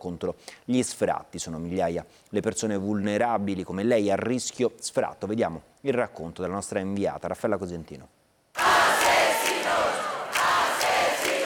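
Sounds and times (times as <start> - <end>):
speech: 0.0 - 8.2
crowd chanting and shouting at night: 8.6 - 11.4.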